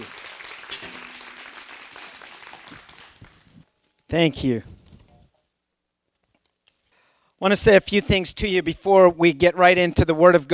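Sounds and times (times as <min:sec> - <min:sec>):
church congregation applause welcoming a pastor: 0:00.0 - 0:03.6
speech: 0:04.1 - 0:04.7, 0:07.4 - 0:10.5.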